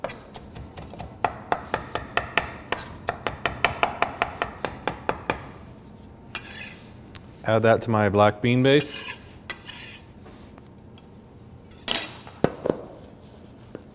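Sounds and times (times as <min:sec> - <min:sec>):
knife rough chopping cilantro on a cutting board: 0:00.0 - 0:05.5
speech: 0:07.5 - 0:09.1.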